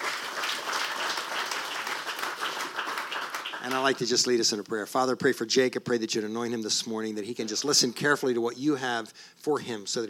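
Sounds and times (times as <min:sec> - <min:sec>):
audience applause welcoming a student speaker: 0:00.0 - 0:04.1
speech: 0:03.7 - 0:10.0.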